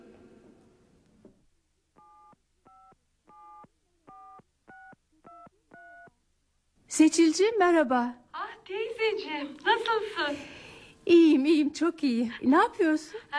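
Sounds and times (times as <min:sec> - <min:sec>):
telephone number dialed with DTMF tones: 0:02.0 - 0:06.1
speech: 0:06.9 - 0:13.3.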